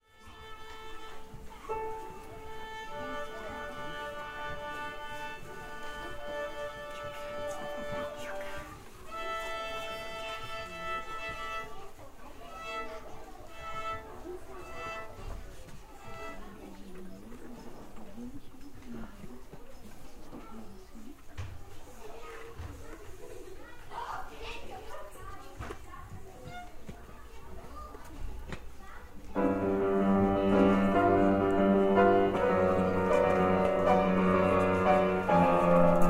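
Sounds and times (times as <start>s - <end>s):
violin with piano accompaniment: 0.0s - 16.7s, 26.4s - 27.0s, 29.3s - 36.0s.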